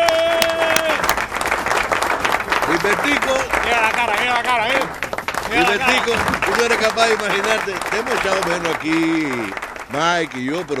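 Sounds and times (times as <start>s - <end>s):
studio audience applauding a returning guest: 0.0s - 10.7s
laughter: 2.3s - 10.7s
speech: 2.9s - 10.7s.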